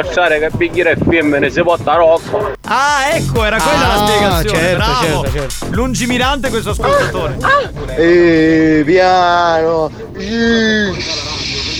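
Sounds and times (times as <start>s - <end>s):
speech: 0.0s - 11.7s
sheep bleating: 2.7s - 5.2s
laughter: 2.8s - 11.7s.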